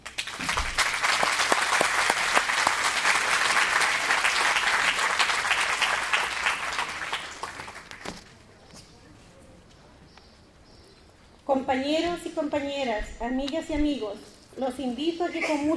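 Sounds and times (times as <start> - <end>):
audience applause: 0.0 - 8.2
speech: 11.7 - 15.7.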